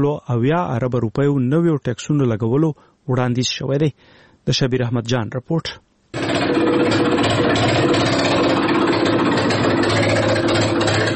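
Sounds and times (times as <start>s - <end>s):
speech: 0.0s - 8.1s
generator powering a village jaggery press droning: 6.1s - 11.1s.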